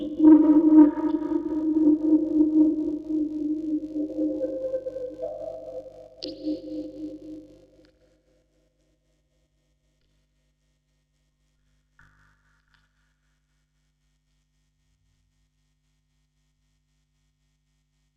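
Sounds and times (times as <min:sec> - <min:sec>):
vocoder recorded on tape: 0:00.0 - 0:07.6.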